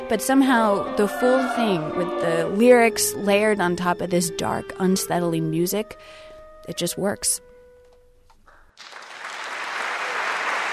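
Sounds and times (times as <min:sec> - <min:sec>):
speech: 0:00.1 - 0:07.5
audience applause after a performance: 0:08.8 - 0:10.7.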